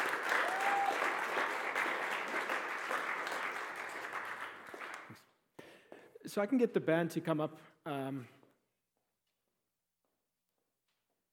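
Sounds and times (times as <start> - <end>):
crowd applause: 0.0 - 5.2
speech: 6.3 - 8.4.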